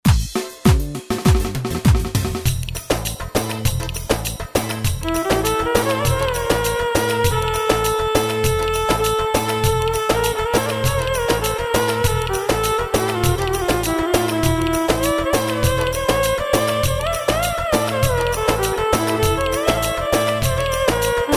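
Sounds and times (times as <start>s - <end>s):
ciftetelli dance music in two-four time: 0.1s - 21.3s.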